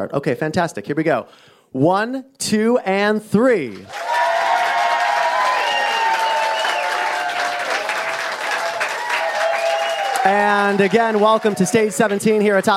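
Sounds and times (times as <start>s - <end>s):
speech: 0.0s - 4.1s, 10.2s - 12.7s
cheering: 3.8s - 12.7s
studio audience applauding on cue atop Madison Square Garden in New York: 3.8s - 12.7s.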